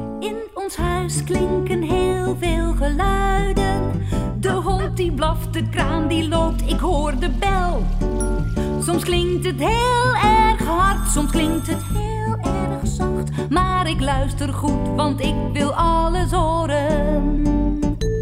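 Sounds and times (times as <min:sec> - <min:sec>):
person singing: 0:00.2 - 0:18.0.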